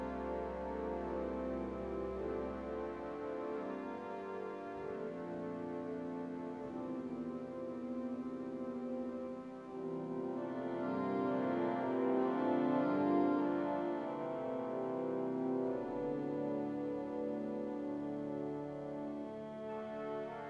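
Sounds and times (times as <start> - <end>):
pipe organ with celestes, violes, clarinet and dulzian stops: 0.0 - 20.4.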